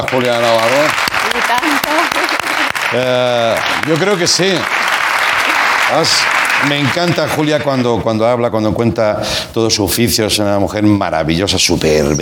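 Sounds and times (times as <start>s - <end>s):
speech: 0.0s - 1.9s, 2.9s - 4.8s, 5.9s - 12.2s
audience applause: 0.0s - 7.9s.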